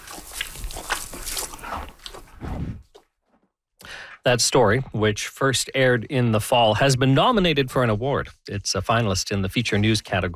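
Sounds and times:
horse chewing hay pulled through a slow-feeder net: 0.0 - 2.4
speech: 4.2 - 10.3.

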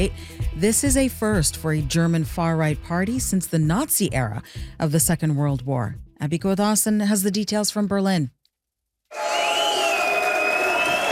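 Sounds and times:
speech: 0.0 - 8.4
party supporters cheering at election celebration: 9.1 - 11.1.

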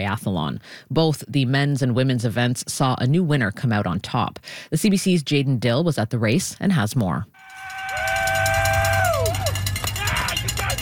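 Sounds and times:
speech: 0.0 - 7.4
supporters cheering on athletes: 7.4 - 10.7.

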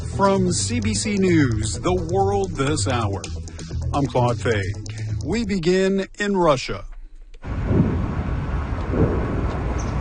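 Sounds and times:
speech: 0.2 - 6.9
distant explosions rumbling: 7.5 - 9.9.

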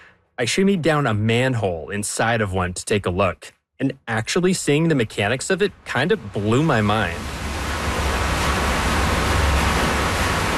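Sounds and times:
speech: 0.4 - 7.4
glacier meltwater rushing into underground reservoir: 5.6 - 10.5.

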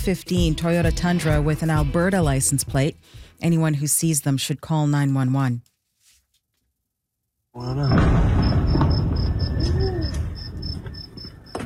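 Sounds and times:
speech: 0.0 - 5.7, 7.6 - 8.5
explosion in northern Iran: 7.8 - 11.2.

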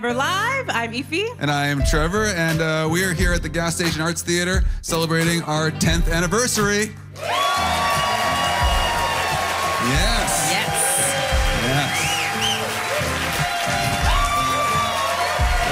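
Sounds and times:
speech: 0.0 - 7.4
theater audience cheering: 7.2 - 15.6.

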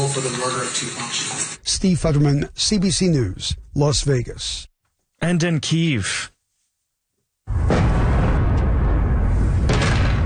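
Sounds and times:
speech: 0.1 - 6.3, 7.5 - 7.9
explosions in the night sky over Kyiv: 7.5 - 10.2.

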